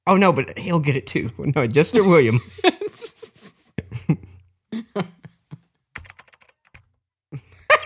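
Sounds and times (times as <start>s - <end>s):
speech: 0.1s - 2.8s
laughter: 2.0s - 5.7s
typing a message in Skype on a computer keyboard: 6.0s - 7.0s.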